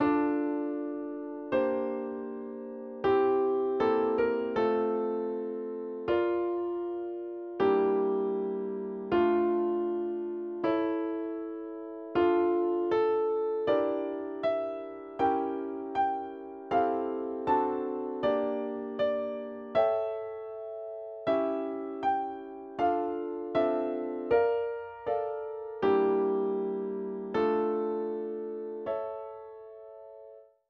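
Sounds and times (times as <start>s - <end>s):
instrumental music: 0.0s - 30.6s.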